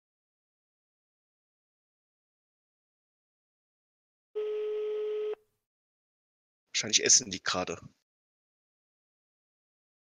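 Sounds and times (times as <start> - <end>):
telephone dialing and ringing tone: 4.4 - 5.4
speech: 6.8 - 8.0.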